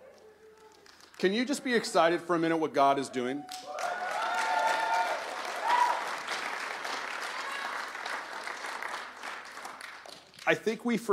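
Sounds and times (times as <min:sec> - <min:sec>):
speech: 0:01.2 - 0:03.8, 0:10.5 - 0:11.1
audience polite golf clapping: 0:03.5 - 0:10.7.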